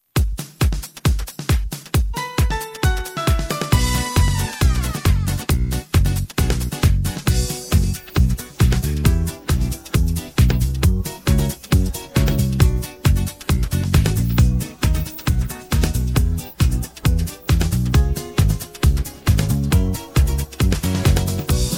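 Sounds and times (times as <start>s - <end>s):
backing track: 1.4s - 21.7s.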